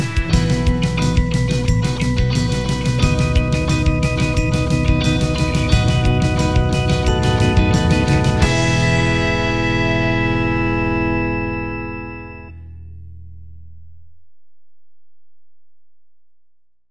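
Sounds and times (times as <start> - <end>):
christmas carol: 0.1 - 12.5.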